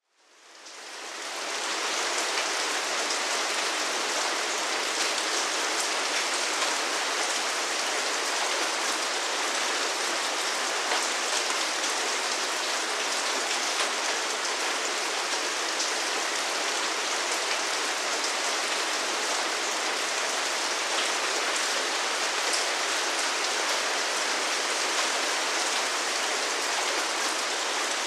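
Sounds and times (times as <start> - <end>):
rain: 0.0 - 28.0.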